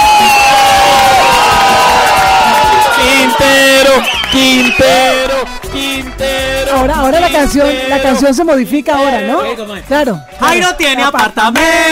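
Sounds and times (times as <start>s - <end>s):
loud applause and cheering: 0.0s - 6.8s
speech: 6.8s - 11.9s.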